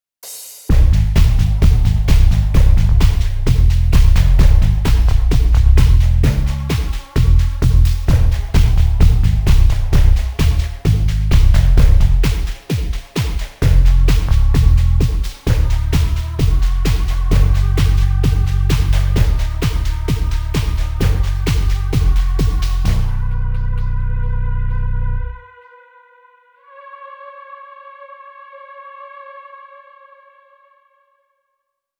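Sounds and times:
music loop: 0.7s - 24.4s.

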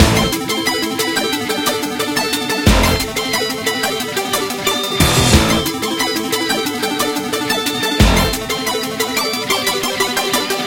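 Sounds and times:
fast music intro: 0.0s - 9.8s.

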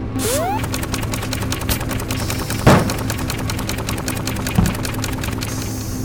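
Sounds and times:
robot helper sounds: 0.2s - 5.9s.

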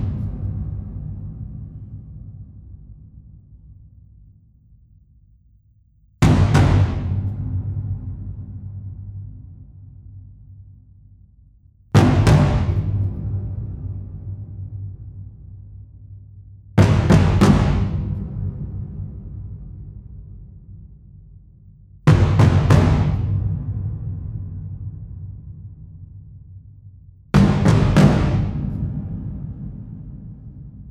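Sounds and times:
huge drum slams: 0.0s - 3.2s, 6.2s - 10.0s, 12.0s - 15.3s, 16.8s - 20.0s, 22.1s - 26.0s, 27.3s - 30.8s.

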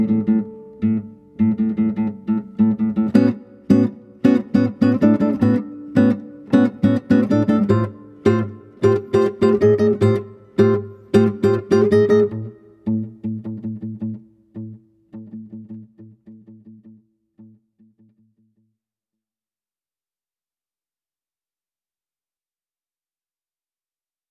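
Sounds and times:
guitar background music: 0.0s - 18.6s.

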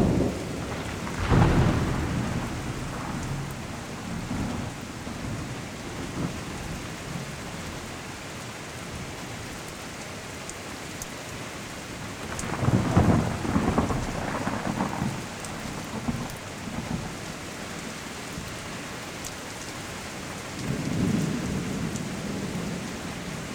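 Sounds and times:
thunderstorm: 0.0s - 8.0s, 12.2s - 17.9s, 20.6s - 23.5s
rain: 0.0s - 23.5s.

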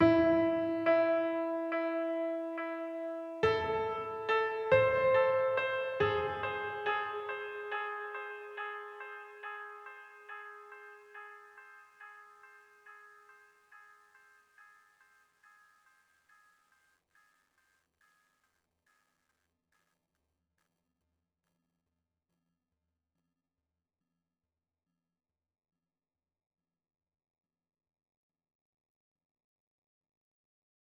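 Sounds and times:
piano one shot: 0.0s - 10.9s.

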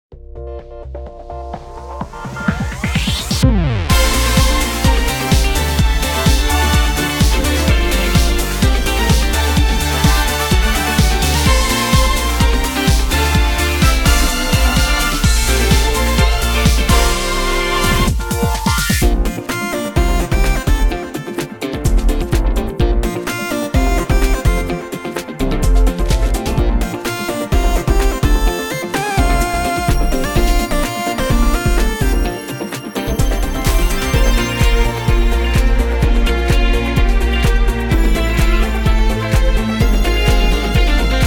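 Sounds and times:
battle background music: 0.9s - 41.2s.

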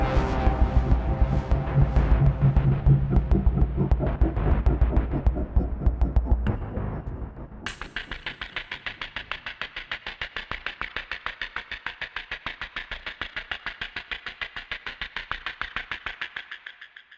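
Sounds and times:
Boss 100 BPM drum machine beat: 0.0s - 7.0s, 7.7s - 9.7s.

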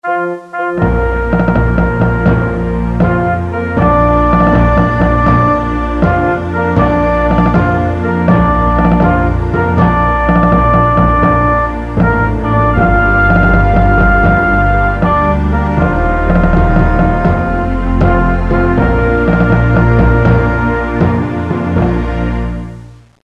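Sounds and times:
bugle call: 0.0s - 22.2s.

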